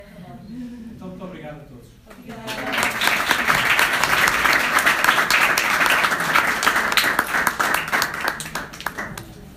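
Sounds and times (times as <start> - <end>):
applause: 2.4 - 9.5.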